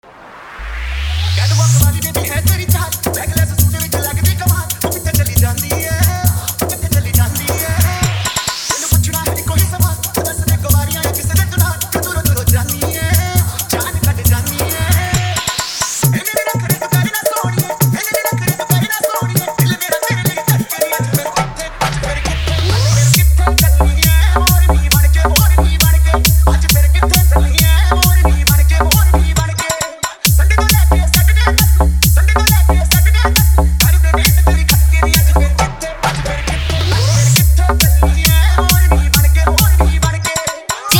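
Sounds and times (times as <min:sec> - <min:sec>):
Hindi DJ remix songs with high bass: 0:00.0 - 0:40.9.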